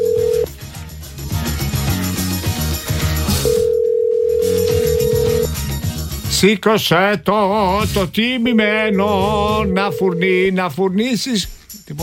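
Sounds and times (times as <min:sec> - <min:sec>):
Viber call ringing tone: 0:00.0 - 0:00.5, 0:03.4 - 0:05.5, 0:08.5 - 0:10.6
rhythmic melodic backing music: 0:00.0 - 0:06.5, 0:07.6 - 0:12.0
speech: 0:06.4 - 0:12.0.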